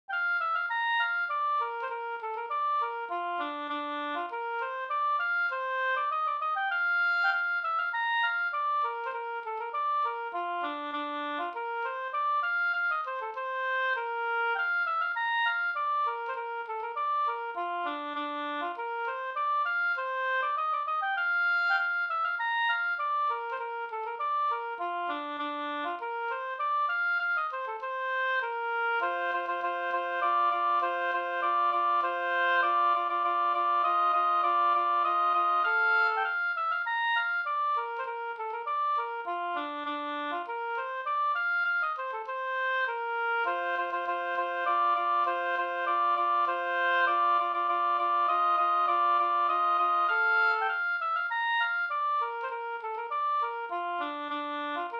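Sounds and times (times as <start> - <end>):
slangpolska folk dance tune: 0.1 - 54.9.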